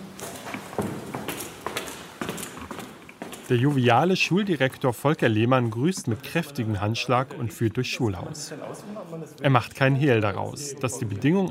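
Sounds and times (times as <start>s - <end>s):
footsteps of people walking through a Gymnasium school building: 0.0s - 4.3s
speech: 3.5s - 11.4s.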